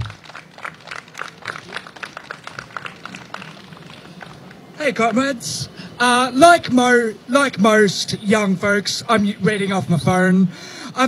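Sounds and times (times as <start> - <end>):
audience applause: 0.0 - 4.8
speech: 4.8 - 11.0.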